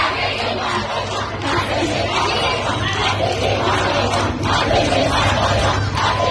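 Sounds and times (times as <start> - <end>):
constant crowd roar at a protest: 0.0 - 6.3
female students chanting at a protest in Shiraz Iran: 0.0 - 6.3.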